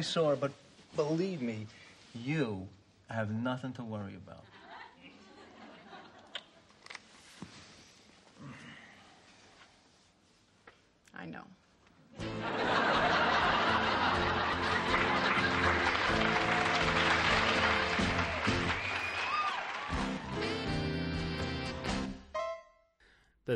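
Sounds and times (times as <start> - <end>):
speech: 0.0 - 4.6, 11.2 - 11.6
laughter: 4.5 - 6.4, 12.2 - 18.5
studio audience applauding: 12.2 - 22.1
high whistles: 18.2 - 20.5
boisterous whoops and hollers: 18.7 - 20.6.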